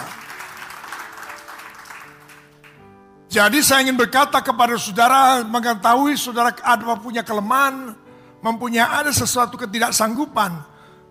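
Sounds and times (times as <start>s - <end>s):
audience applause: 0.0s - 2.8s
speech: 3.3s - 10.7s.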